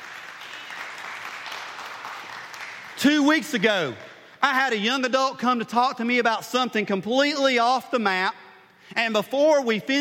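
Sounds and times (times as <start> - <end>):
audience applause: 0.0 - 3.0
speech: 3.0 - 9.9.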